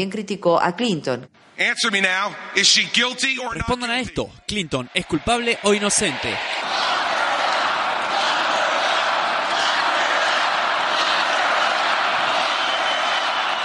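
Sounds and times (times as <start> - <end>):
speech: 0.0 - 6.9
audience chanting at the Republican National Convention: 4.6 - 13.6.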